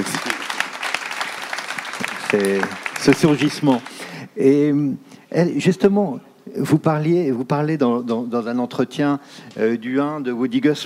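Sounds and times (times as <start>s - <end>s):
audience applause: 0.0s - 4.2s
speech: 2.3s - 10.8s.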